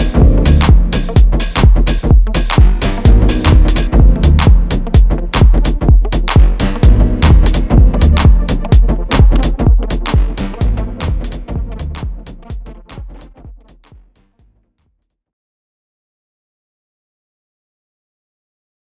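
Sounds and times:
dub music: 0:00.0 - 0:14.0.

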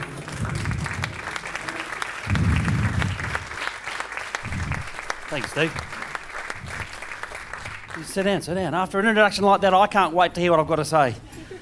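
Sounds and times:
audience applause: 0:00.0 - 0:08.3
speech: 0:05.3 - 0:05.9, 0:08.0 - 0:11.3.

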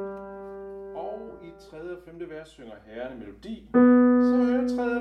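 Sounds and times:
baritone singing: 0:03.4 - 0:04.9.

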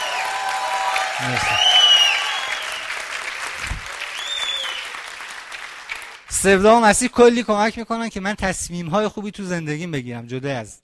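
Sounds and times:
audience applause: 0:00.0 - 0:06.3
speech: 0:01.2 - 0:01.7, 0:06.4 - 0:10.8.

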